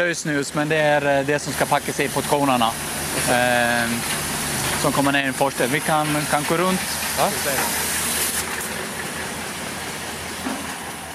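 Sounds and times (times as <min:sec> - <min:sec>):
speech: 0:00.0 - 0:04.2, 0:04.8 - 0:07.8
old sugar mill machinery running on Gotland: 0:00.2 - 0:11.1.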